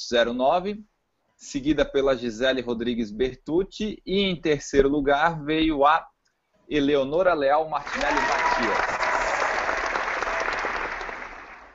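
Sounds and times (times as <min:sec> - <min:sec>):
speech: 0:00.0 - 0:06.1, 0:06.7 - 0:09.0
audience applause: 0:07.8 - 0:11.7.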